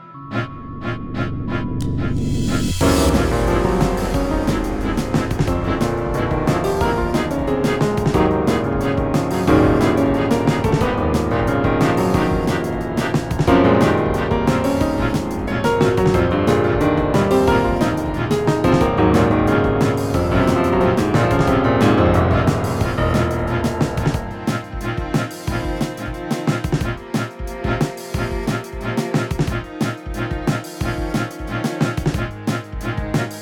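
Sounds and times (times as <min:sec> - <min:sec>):
battle music: 0:00.3 - 0:33.3.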